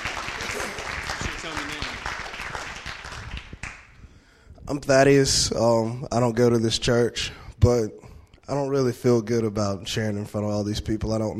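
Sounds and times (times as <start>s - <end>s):
audience applause: 0.0s - 3.9s
speech: 4.7s - 11.3s.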